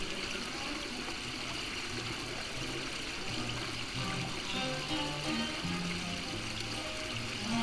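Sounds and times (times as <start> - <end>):
old town ambience: 0.2 - 7.6
music playing in an old town: 1.9 - 7.6.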